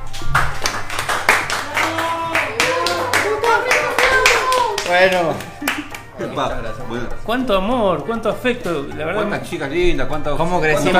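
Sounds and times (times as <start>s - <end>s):
studio audience clapping: 0.0s - 6.2s
speech: 4.9s - 10.9s.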